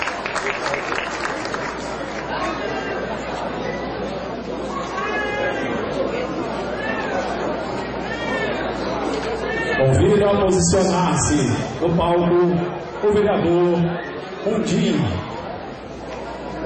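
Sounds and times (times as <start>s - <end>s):
crowd applauding: 0.0s - 2.4s
loud audience chatter: 0.0s - 16.6s
speech: 9.9s - 15.2s.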